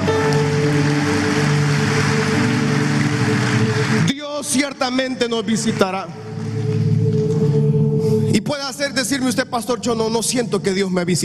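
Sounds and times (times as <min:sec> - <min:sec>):
audience clapping: 0:00.0 - 0:07.6
sustained musical tones: 0:00.0 - 0:09.9
speech: 0:04.6 - 0:06.3, 0:08.5 - 0:11.2.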